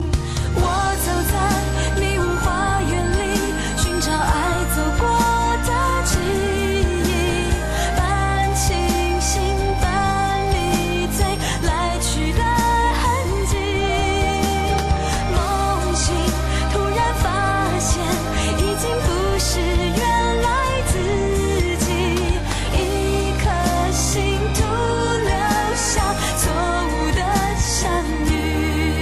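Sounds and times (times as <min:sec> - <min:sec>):
Chinese song: 0:00.3 - 0:29.0.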